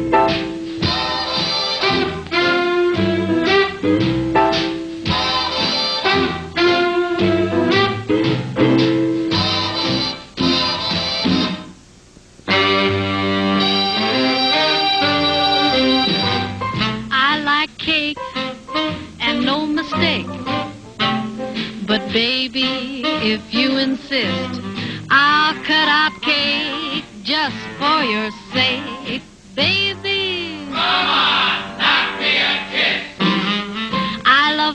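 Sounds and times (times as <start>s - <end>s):
big band swing music with full horns and rhythm section: 0.0s - 11.8s, 12.4s - 34.7s
woman singing: 17.1s - 18.2s, 19.2s - 20.3s, 21.8s - 30.8s, 34.2s - 34.7s.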